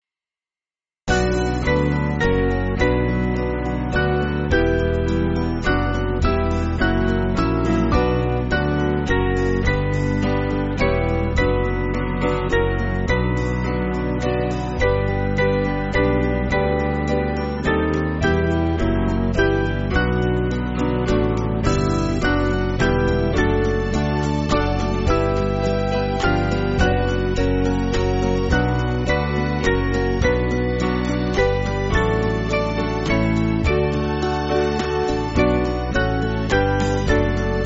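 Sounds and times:
band backing music: 0:01.1 - 0:37.6.

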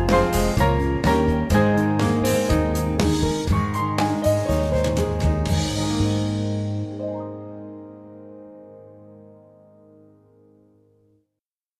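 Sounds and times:
band playing: 0:00.0 - 0:07.2.

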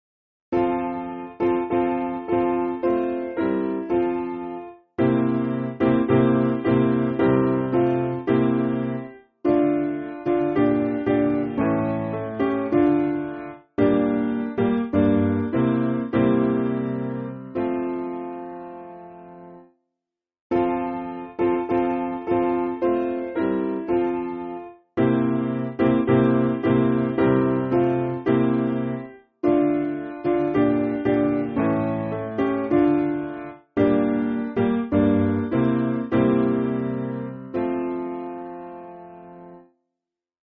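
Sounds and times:
piano backing music for churches: 0:00.6 - 0:19.7, 0:20.5 - 0:39.7.

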